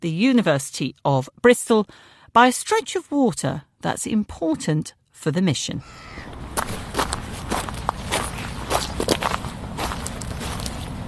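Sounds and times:
speech: 0.0s - 6.4s
footsteps crunching and squelching over seaweed and stones: 6.5s - 11.0s.

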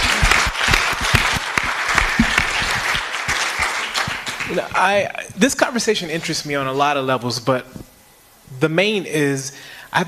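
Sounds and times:
crowd applauding: 0.0s - 5.0s
speech: 4.8s - 7.9s, 8.6s - 10.0s.

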